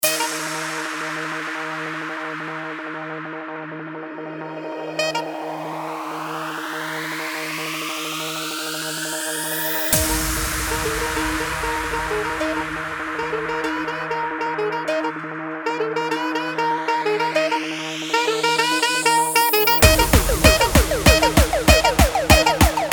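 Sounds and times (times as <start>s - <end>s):
rock saxophone intro: 0.0s - 1.3s, 4.6s - 6.4s, 10.0s - 22.9s.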